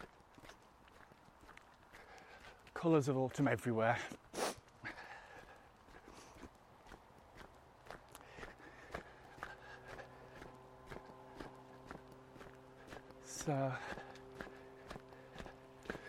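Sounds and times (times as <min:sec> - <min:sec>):
footsteps of someone walking down a hill: 0:00.0 - 0:16.0
speech: 0:02.8 - 0:04.3.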